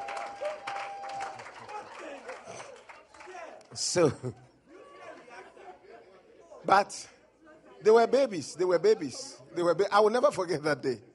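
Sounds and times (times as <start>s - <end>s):
audience clapping: 0.0s - 4.0s
speech: 3.7s - 4.5s, 6.7s - 7.2s, 7.8s - 11.1s.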